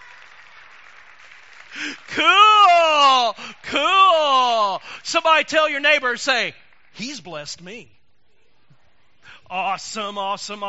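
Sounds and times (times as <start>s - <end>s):
congregation clapping hands: 0.0s - 7.7s
speech: 1.7s - 8.0s, 9.5s - 10.6s.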